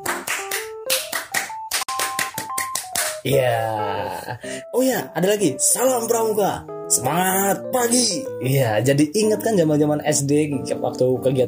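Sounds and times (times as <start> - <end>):
scout-style rhythmic clapping: 0.0 - 3.4
speech: 3.2 - 11.4.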